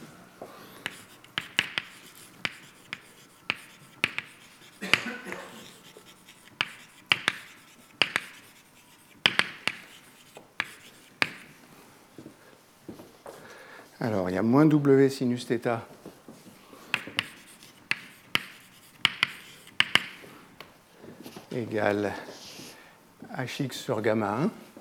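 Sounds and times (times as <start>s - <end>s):
chalk tapping and scratching on a blackboard during a physics lecture: 0.6s - 11.7s, 16.8s - 20.4s
speech: 14.0s - 16.0s, 21.6s - 22.3s, 23.4s - 24.6s.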